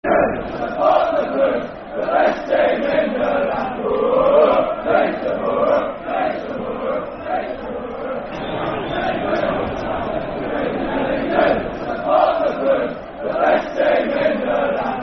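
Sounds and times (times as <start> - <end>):
football chant, soccer song: 0.0 - 15.0.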